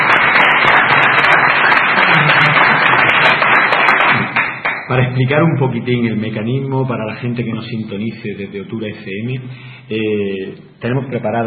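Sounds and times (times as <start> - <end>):
audience applause: 0.0 - 4.9
speech: 4.9 - 11.4.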